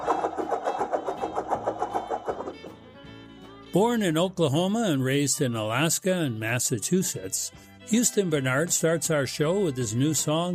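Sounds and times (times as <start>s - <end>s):
globe spinning with ticking rattle: 0.0s - 2.8s
speech: 3.7s - 10.5s.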